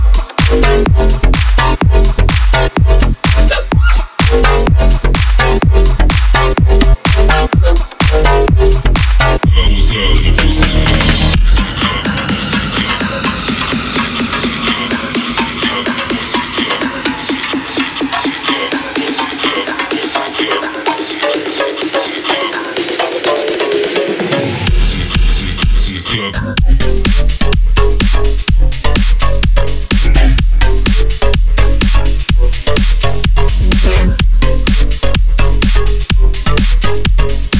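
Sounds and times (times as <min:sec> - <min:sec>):
house music: 0:00.0 - 0:37.5.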